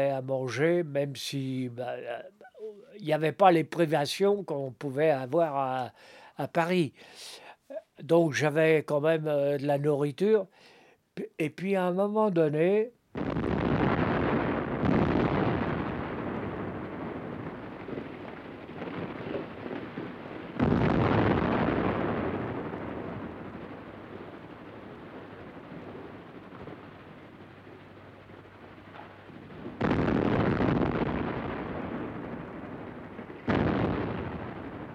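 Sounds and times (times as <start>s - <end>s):
speech: 0.0s - 2.4s, 3.0s - 7.4s, 8.0s - 13.4s
bombing explosions with rumbling roar: 13.2s - 34.9s.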